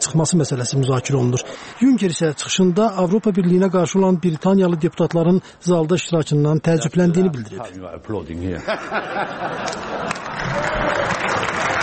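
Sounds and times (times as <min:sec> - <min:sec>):
speech: 0:00.0 - 0:10.1
applause in a European Parliament session during a Brexit debate: 0:01.0 - 0:05.0, 0:09.6 - 0:11.8
laughter: 0:08.5 - 0:11.8.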